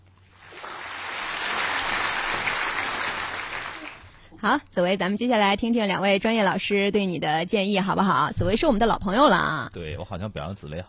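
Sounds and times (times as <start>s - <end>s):
applause: 0.4s - 4.2s
speech: 4.4s - 10.8s.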